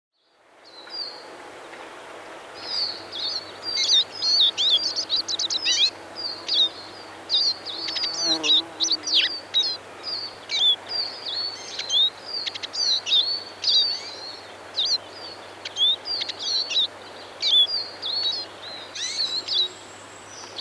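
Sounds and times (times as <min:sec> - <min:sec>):
Eurasian Siskin twittering song with whistled upturned note: 0:02.8 - 0:19.8.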